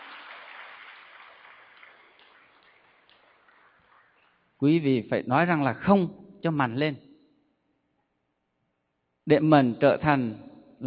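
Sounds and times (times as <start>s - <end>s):
audience applause: 0.0s - 4.1s
speech: 4.6s - 7.0s, 9.3s - 10.5s.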